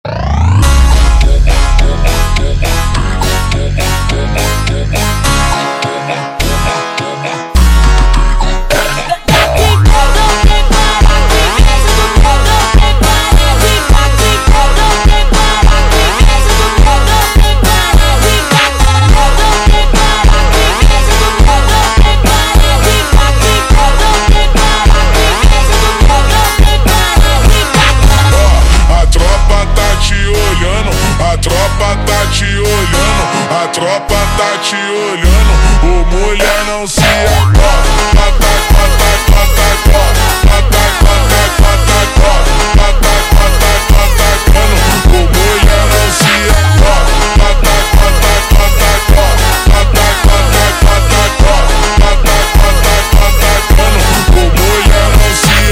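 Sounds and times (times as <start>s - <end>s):
slowed funk music: 0.0s - 55.7s.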